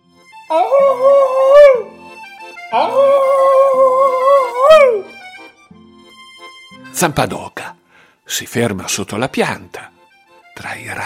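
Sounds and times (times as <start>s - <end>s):
speech: 0.5s - 1.4s, 2.7s - 3.5s, 7.0s - 7.7s, 8.3s - 9.9s, 10.6s - 11.0s
long inhuman owl-like howls: 0.5s - 2.0s, 2.7s - 5.1s.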